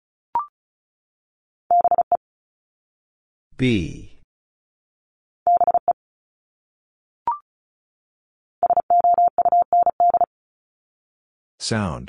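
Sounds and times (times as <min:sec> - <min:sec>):
Morse code tones: 0:01.7 - 0:02.2, 0:05.5 - 0:06.0, 0:08.6 - 0:10.3
speech: 0:03.6 - 0:04.1, 0:11.6 - 0:12.0.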